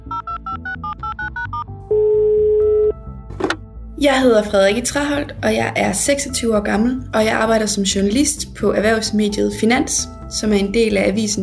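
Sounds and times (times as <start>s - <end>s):
touch-tone telephone dialing beeps: 0.1s - 3.0s
speech: 4.0s - 11.4s.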